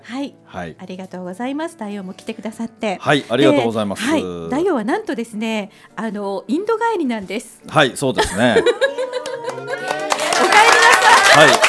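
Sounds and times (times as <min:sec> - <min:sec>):
speech: 0:00.2 - 0:09.0, 0:11.4 - 0:11.6
laughter: 0:08.2 - 0:11.6
audience clapping: 0:08.9 - 0:11.6.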